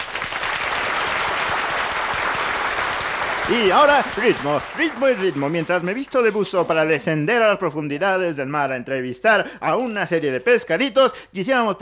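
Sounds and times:
audience applause: 0.0s - 6.9s
speech: 3.5s - 11.8s.

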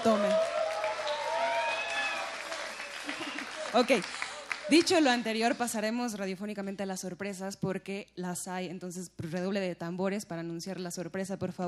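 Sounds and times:
speech: 0.0s - 0.3s, 3.7s - 11.6s
audience applause: 0.0s - 5.2s.

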